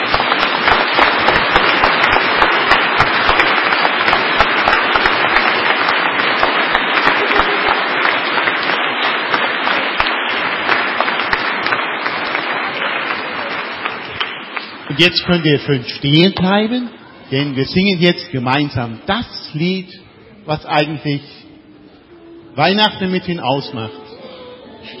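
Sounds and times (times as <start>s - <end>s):
applause for children's choir: 0.0s - 15.6s
speech: 15.0s - 21.4s, 22.6s - 24.0s.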